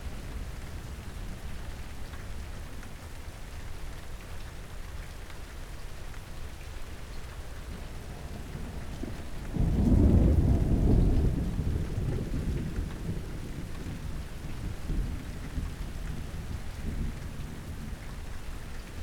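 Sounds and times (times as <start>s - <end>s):
thunder: 8.2s - 17.7s.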